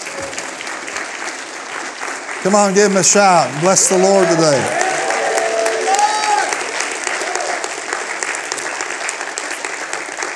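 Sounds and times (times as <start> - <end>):
audience clapping hands: 0.0 - 10.3
speech: 2.4 - 5.0.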